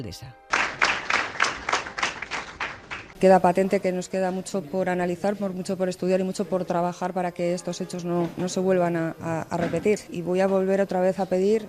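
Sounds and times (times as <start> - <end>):
speech: 0.0 - 0.4, 3.2 - 11.6
applause at a memorial gathering: 0.5 - 3.2.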